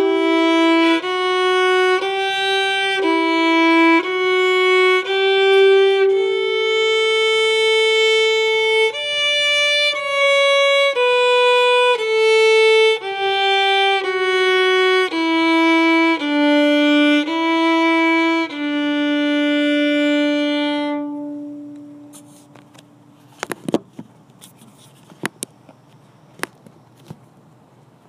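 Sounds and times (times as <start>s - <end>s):
French folk song: 0.0s - 22.3s.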